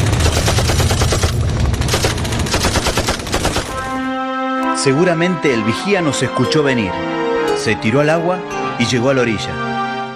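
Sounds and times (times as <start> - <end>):
machine gun fire: 0.0 - 4.0
speech: 4.8 - 10.1.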